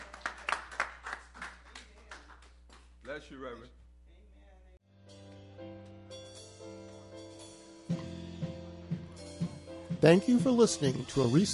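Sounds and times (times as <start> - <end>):
audience clapping hands in praise: 0.0 - 3.2
speech: 3.2 - 3.8, 10.0 - 11.5.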